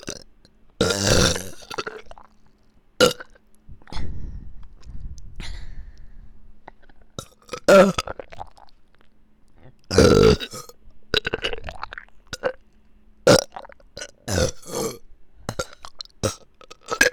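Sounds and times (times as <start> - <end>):
burping in both ears: 0.0 - 2.3, 3.0 - 3.4, 6.7 - 8.7, 9.6 - 12.6, 13.3 - 17.1.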